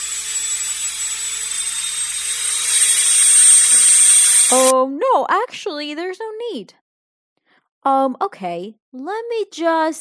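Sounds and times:
dental drill whining: 0:00.0 - 0:04.7
speech: 0:04.5 - 0:06.8, 0:07.8 - 0:09.9.

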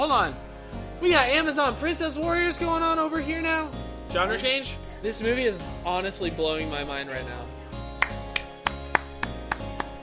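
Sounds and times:
speech: 0:00.0 - 0:00.4, 0:01.0 - 0:07.6
hands clapping: 0:07.9 - 0:10.0.

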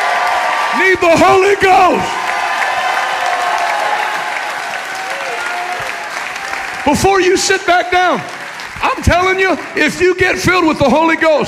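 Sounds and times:
church congregation shouting at a revival service: 0:00.0 - 0:07.0
church congregation clapping at a revival service: 0:00.0 - 0:11.4
speech: 0:00.8 - 0:02.2, 0:06.8 - 0:11.4.

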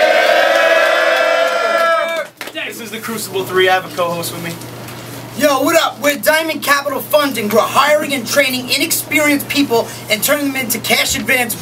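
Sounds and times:
crowd cheering: 0:00.0 - 0:02.5
speech: 0:02.8 - 0:04.8, 0:05.4 - 0:11.5.

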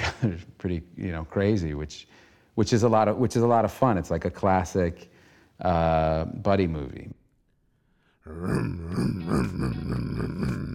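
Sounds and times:
speech: 0:00.2 - 0:07.2, 0:08.2 - 0:10.7
voice imitating revving car engine: 0:08.3 - 0:10.7.

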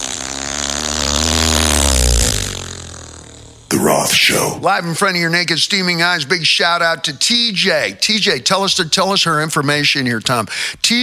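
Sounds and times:
Volkswagen engine revving: 0:00.0 - 0:03.7
speech: 0:03.9 - 0:11.0.

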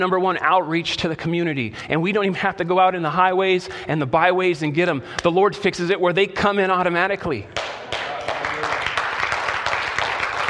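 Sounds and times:
speech: 0:00.0 - 0:07.6
audience clapping: 0:07.5 - 0:10.4.

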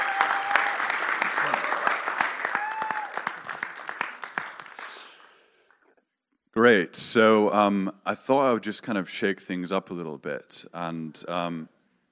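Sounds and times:
church audience clapping to welcome a speaker: 0:00.0 - 0:05.9
speech: 0:06.6 - 0:11.8.

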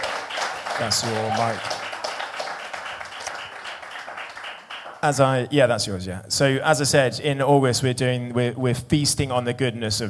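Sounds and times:
audience cheering and clapping: 0:00.0 - 0:05.2
speech: 0:00.8 - 0:01.8, 0:05.0 - 0:10.0.

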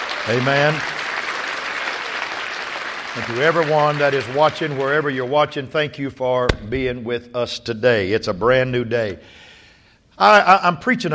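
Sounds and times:
audience hand clapping applause: 0:00.0 - 0:05.0
speech: 0:00.2 - 0:00.9, 0:03.2 - 0:09.5, 0:10.2 - 0:11.1.

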